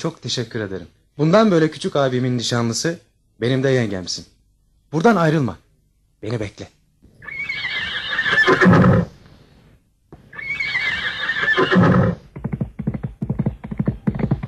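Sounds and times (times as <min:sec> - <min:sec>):
speech: 0:00.0 - 0:04.3, 0:04.9 - 0:05.6, 0:06.2 - 0:06.8, 0:08.5 - 0:09.0
horse neighing as a prince mounts: 0:07.2 - 0:09.2, 0:10.3 - 0:12.2
hoofbeats as a prince rides off: 0:12.1 - 0:14.4.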